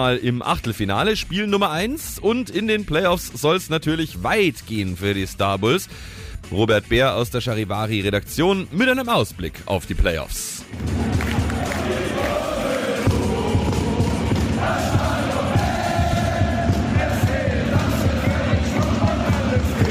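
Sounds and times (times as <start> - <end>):
speech: 0.0 - 11.8
ice hockey stadium crowd cheering: 10.8 - 19.8.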